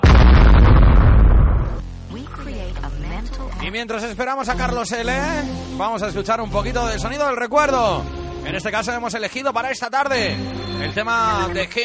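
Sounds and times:
bomb explosion sound effect: 0.0 - 2.2
speech: 3.7 - 11.8.

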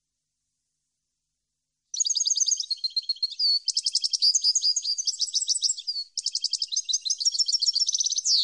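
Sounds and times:
European goldfinch singing: 2.0 - 8.4.

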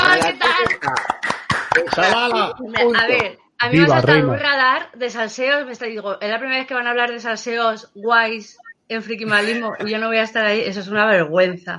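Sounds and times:
hand claps: 0.0 - 3.3, 9.3 - 9.6
laughter: 0.0 - 4.4, 9.3 - 9.9
people talking loudly: 0.0 - 11.7
speech: 2.0 - 11.7.

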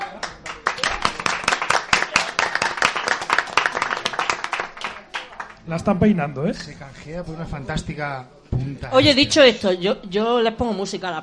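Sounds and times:
audience applause: 0.0 - 5.6
speech: 5.7 - 11.2.

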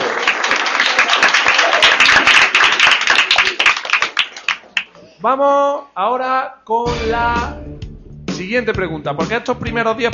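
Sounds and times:
crowd applauding: 0.0 - 4.9
speech: 5.2 - 7.7, 8.4 - 10.1.

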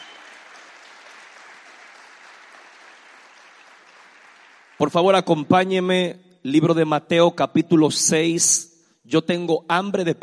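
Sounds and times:
audience applause: 0.0 - 4.9
speech: 4.8 - 10.2.

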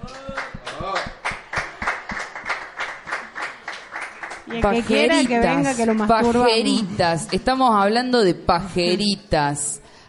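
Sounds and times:
applause: 0.1 - 6.1
speech: 4.5 - 9.8.

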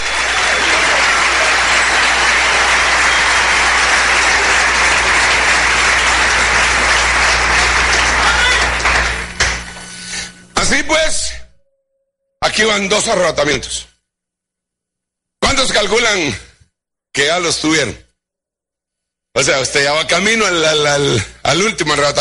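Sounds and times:
loud audience applause: 0.0 - 10.0
speech: 12.6 - 13.9, 15.6 - 16.5, 17.2 - 18.0, 19.4 - 22.1.

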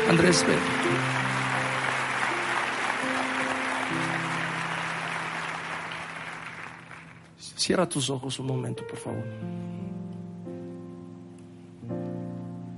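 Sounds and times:
audience applause: 0.0 - 7.3
sustained keyboard chords: 0.0 - 7.3, 8.4 - 12.7
speech: 0.1 - 1.2, 7.7 - 9.8.

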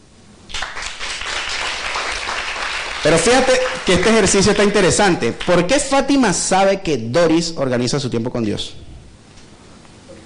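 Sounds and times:
audience applause: 0.5 - 5.7
speech: 3.0 - 8.9.

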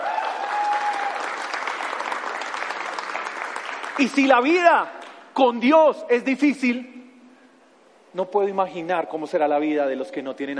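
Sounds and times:
crowd clapping: 0.0 - 5.2
speech: 4.0 - 7.0, 8.2 - 10.5.

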